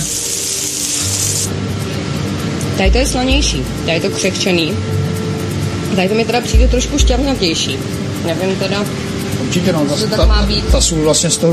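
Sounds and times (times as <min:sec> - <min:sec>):
chicken sputtering while frying in pan: 0:00.0 - 0:01.5
low hum: 0:01.4 - 0:11.3
speech: 0:01.5 - 0:01.8, 0:02.8 - 0:05.1, 0:05.9 - 0:11.5.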